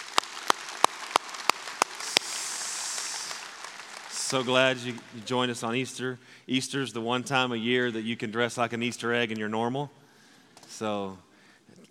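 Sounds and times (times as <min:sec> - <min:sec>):
audience applauding: 0:00.0 - 0:06.0
speech: 0:04.3 - 0:10.0, 0:10.8 - 0:11.3.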